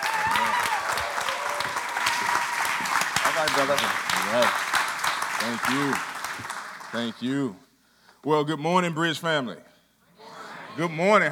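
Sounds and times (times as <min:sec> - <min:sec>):
audience applause at a church's fifth anniversary service: 0:00.0 - 0:07.3
speech: 0:03.4 - 0:04.7, 0:05.4 - 0:07.6, 0:08.2 - 0:09.7, 0:10.8 - 0:11.2.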